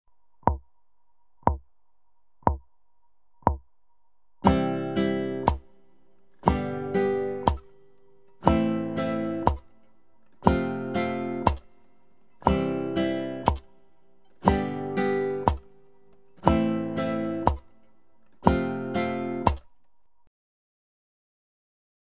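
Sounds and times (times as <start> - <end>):
instrument strumming: 4.4 - 5.7, 6.4 - 9.8, 10.4 - 11.7, 12.4 - 13.7, 14.4 - 17.7, 18.4 - 19.6.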